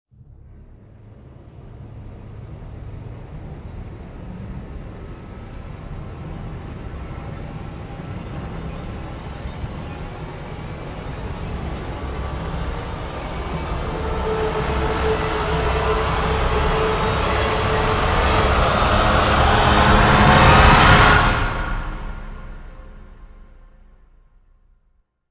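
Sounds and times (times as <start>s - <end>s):
orchestra: 4.1s - 23.6s
choir: 6.6s - 23.0s.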